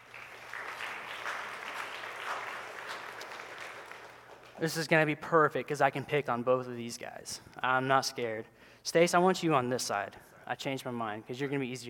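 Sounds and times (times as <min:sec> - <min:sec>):
audience applause: 0:00.0 - 0:04.6
speech: 0:04.6 - 0:11.8.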